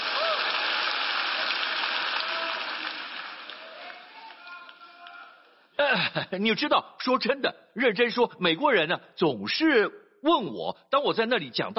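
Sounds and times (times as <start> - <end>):
audience clapping and cheering: 0.0 - 5.6
speech: 5.9 - 11.7.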